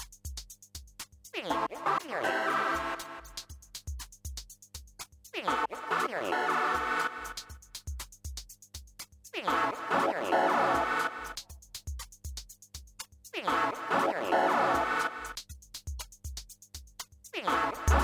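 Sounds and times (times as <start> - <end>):
Kaossilator synthesizer: 1.5 - 3.5, 5.5 - 7.6, 9.5 - 11.5, 13.4 - 15.4, 17.4 - 18.0.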